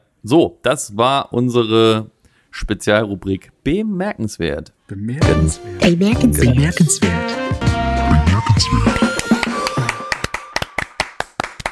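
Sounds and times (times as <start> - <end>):
speech: 0.2 - 7.8, 8.4 - 9.3
applause: 8.9 - 11.7.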